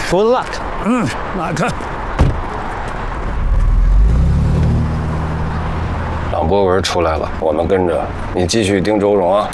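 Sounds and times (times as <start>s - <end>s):
speech: 0.1s - 1.9s, 6.4s - 9.5s
car engine pulling away: 3.2s - 6.7s.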